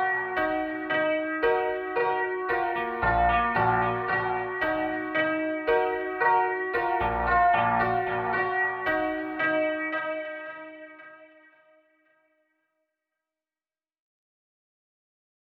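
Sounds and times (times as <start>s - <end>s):
processed piano: 0.0s - 11.5s.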